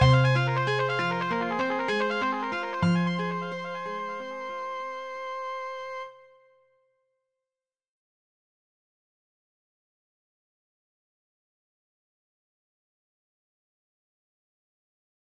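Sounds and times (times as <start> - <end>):
trumpet played upside down: 0.0 - 6.6.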